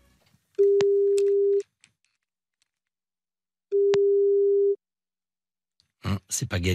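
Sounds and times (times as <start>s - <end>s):
telephone ringing tone while placing a birthday call: 0.6s - 1.6s, 3.7s - 4.8s
speech: 6.3s - 6.7s.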